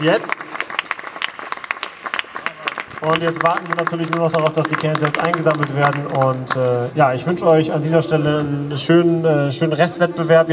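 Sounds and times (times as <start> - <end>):
speech: 0.0 - 0.5, 3.0 - 10.5
audience applause: 0.0 - 7.0.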